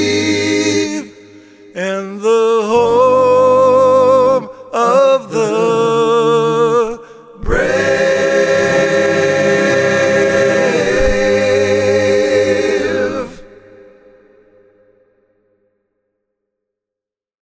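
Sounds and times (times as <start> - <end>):
person singing: 0.0 - 13.7.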